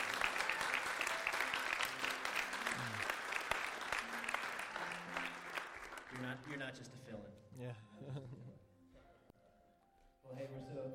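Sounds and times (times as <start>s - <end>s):
round of applause: 0.0s - 6.8s
speech: 6.2s - 8.5s.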